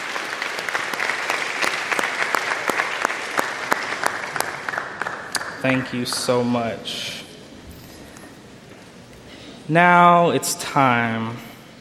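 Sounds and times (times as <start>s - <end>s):
audience applauding: 0.0s - 6.9s
speech: 5.6s - 7.2s, 9.7s - 11.5s.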